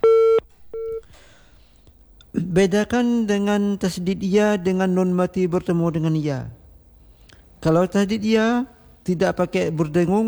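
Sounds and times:
telephone busy tone after a call line cuts off: 0.0s - 1.1s
speech: 2.3s - 6.6s, 7.6s - 10.2s.

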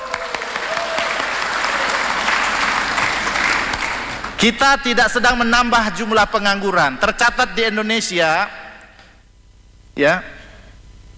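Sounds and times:
audience clapping: 0.0s - 4.5s
speech: 4.4s - 8.6s, 10.0s - 10.4s.

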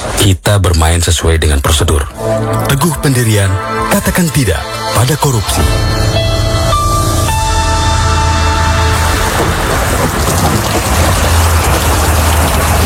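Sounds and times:
speech: 0.2s - 6.4s
heavy rain: 7.6s - 12.8s.

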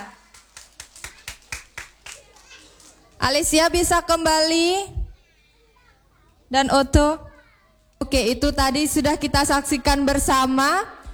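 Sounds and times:
sharp claps: 0.0s - 3.3s
speech: 3.2s - 5.0s, 6.5s - 7.3s, 8.0s - 11.1s.

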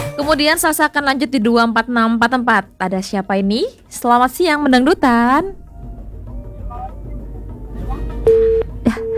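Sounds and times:
low noise: 0.1s - 9.1s
speech: 0.3s - 5.6s
telephone busy tone beeps after a call to a radio station disconnects: 5.0s - 9.1s.

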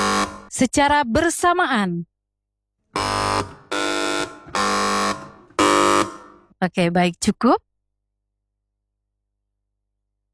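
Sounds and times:
loud electronic quiz buzzers pressed by teams: 0.0s - 0.5s, 3.0s - 6.5s
speech: 0.6s - 2.1s, 6.6s - 7.6s.

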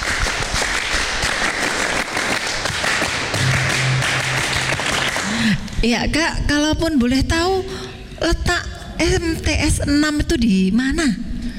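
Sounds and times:
children doing the scout clap: 0.0s - 5.8s
speech: 5.8s - 11.3s.

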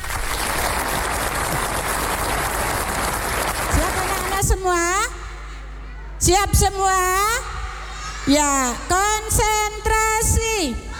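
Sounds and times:
audience clapping hands: 0.0s - 4.7s
speech: 6.3s - 7.5s, 8.3s - 10.8s.

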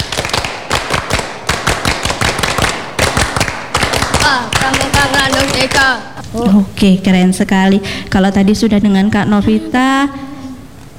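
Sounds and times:
scout clapping pattern: 0.0s - 6.3s
speech: 4.3s - 10.3s.

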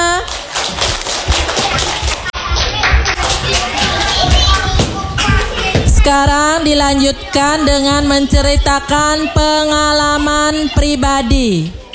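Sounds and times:
group of children clapping: 0.0s - 6.0s
speech: 6.2s - 11.9s.

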